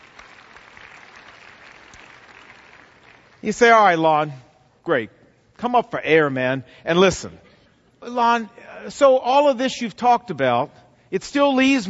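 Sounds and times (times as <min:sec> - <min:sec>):
audience clapping: 0:00.0 - 0:04.0
speech: 0:03.4 - 0:11.8.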